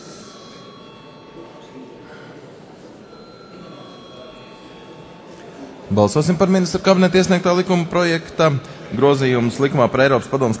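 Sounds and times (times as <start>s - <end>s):
parliament voting bell ringing: 0.0s - 8.4s
speech: 5.9s - 10.5s.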